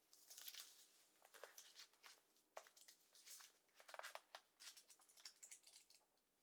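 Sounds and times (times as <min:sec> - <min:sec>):
book pages turning: 0:00.1 - 0:05.8.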